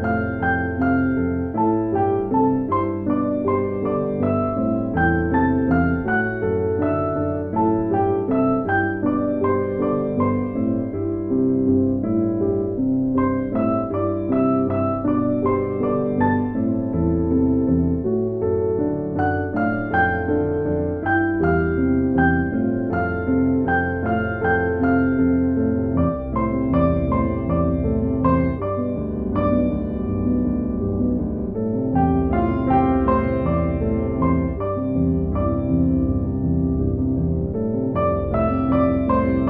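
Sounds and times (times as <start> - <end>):
peaceful piano music: 0.0 - 39.4.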